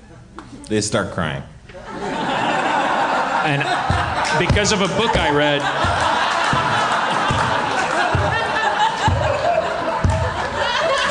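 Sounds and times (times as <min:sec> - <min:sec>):
speech: 0:00.4 - 0:01.6, 0:03.4 - 0:06.0
scattered laughter: 0:01.9 - 0:11.1
slow deliberate sarcastic applause from audience: 0:05.7 - 0:11.1.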